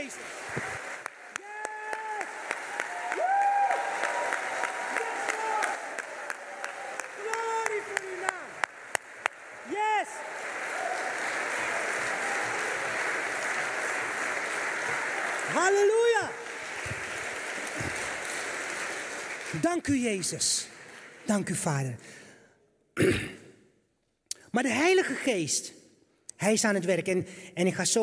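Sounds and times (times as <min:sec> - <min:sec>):
audience applauding: 0:00.0 - 0:21.9
speech: 0:00.5 - 0:00.8, 0:19.8 - 0:20.7, 0:21.3 - 0:22.2, 0:24.6 - 0:25.8, 0:26.4 - 0:28.0.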